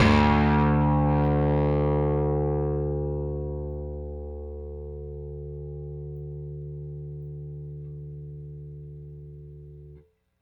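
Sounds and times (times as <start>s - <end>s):
Rickenbacker bass guitar: 0.0s - 10.2s.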